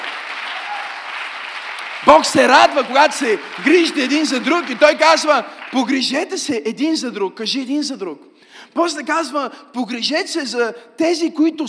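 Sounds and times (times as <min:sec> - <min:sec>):
audience applause: 0:00.0 - 0:06.2
speech: 0:02.0 - 0:11.6.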